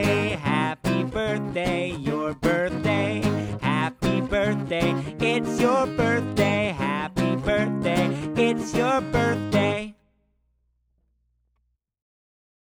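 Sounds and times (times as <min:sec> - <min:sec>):
guitar playing a song: 0:00.0 - 0:09.9.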